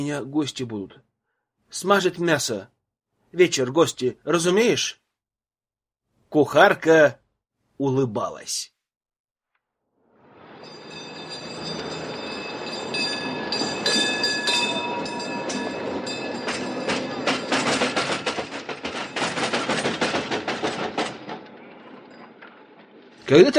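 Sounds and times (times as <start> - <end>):
speech: 0.0 - 1.1, 1.7 - 5.0, 6.3 - 7.2, 7.8 - 8.7, 23.3 - 23.5
tram rolling along its rails: 10.3 - 23.5
wheels clattering over the track: 11.8 - 23.5.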